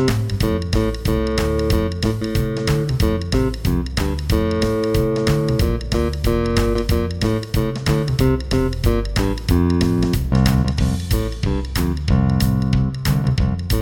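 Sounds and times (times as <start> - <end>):
jazz electric bass solo in F major: 0.0 - 13.8.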